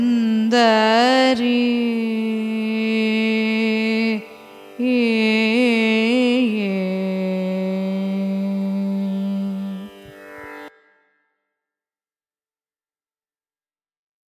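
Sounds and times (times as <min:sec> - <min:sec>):
carnatic raga performance: 0:00.0 - 0:11.2.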